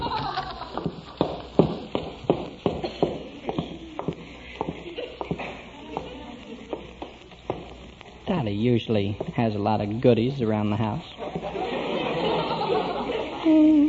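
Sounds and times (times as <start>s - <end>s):
laughter: 0.0s - 1.2s, 11.1s - 13.8s
footsteps going downstairs inside a house: 0.0s - 8.1s, 9.1s - 9.5s
speech: 8.4s - 11.3s.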